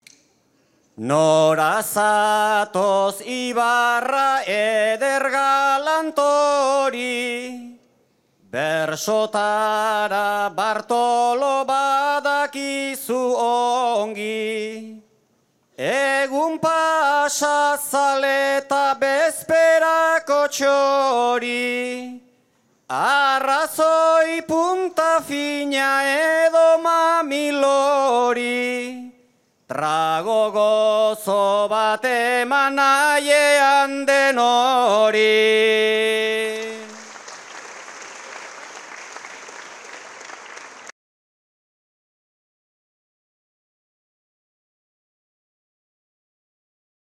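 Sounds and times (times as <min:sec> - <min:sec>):
person singing a bertso greeting verse: 0:01.0 - 0:07.9, 0:08.5 - 0:15.1, 0:15.8 - 0:22.3, 0:22.9 - 0:37.1.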